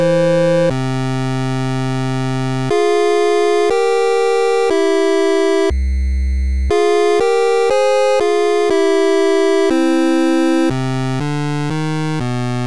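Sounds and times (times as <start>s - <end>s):
8-bit requiem loop: 0.0s - 12.6s.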